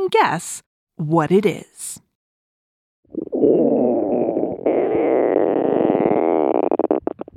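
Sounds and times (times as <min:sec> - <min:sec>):
speech: 0:00.1 - 0:02.0
stomach rumble: 0:03.2 - 0:07.3.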